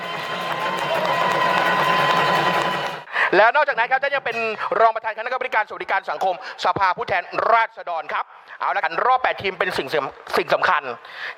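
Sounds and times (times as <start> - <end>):
audience applause welcoming a guest: 0.0 - 3.1
speech: 3.3 - 11.3.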